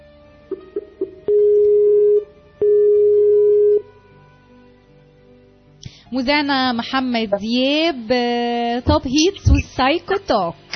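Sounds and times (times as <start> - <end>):
telephone line tones as a call comes in: 0.5 - 3.9
speech: 6.1 - 10.7.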